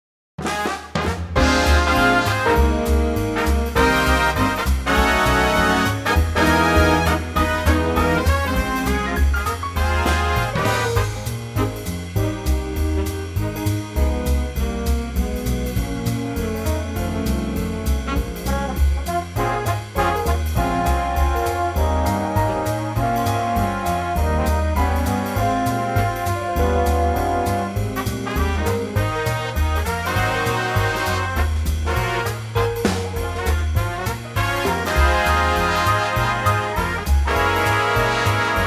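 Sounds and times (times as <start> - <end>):
big band backing track in A-flat: 0.4 - 38.6.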